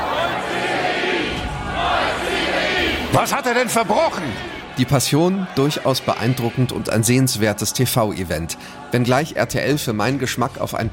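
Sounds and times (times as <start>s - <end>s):
live audience shouting as the crowd in a televised passion play: 0.0s - 7.5s
speech: 3.1s - 10.9s.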